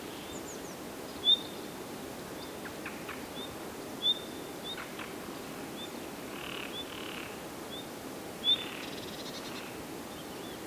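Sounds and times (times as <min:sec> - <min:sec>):
Luscinia megarhynchos singing: 0:00.2 - 0:01.7, 0:02.4 - 0:05.1, 0:05.8 - 0:10.6.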